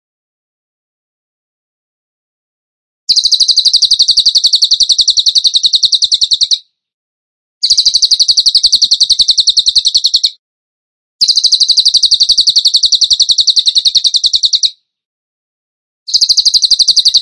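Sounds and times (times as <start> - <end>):
bird trilling: 3.1 - 6.6, 7.6 - 10.4, 11.2 - 14.8, 16.1 - 17.2.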